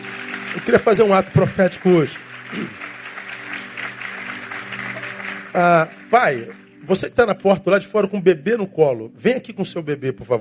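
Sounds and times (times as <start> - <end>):
audience applauding: 0.0 - 7.4
speech: 0.6 - 2.9, 5.6 - 10.3.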